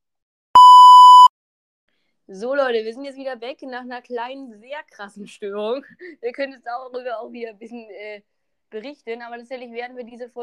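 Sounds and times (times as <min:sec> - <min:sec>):
short electronic beep: 0:00.6 - 0:01.3
speech: 0:02.3 - 0:10.4.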